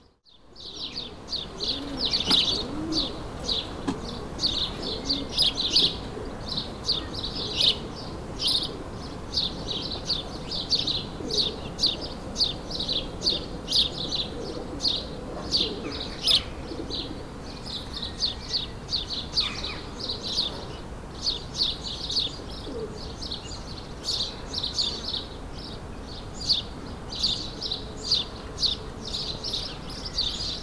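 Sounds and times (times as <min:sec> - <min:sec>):
sparrows chirping: 0:00.0 - 0:30.6
low cooing: 0:00.6 - 0:09.8, 0:11.0 - 0:17.4.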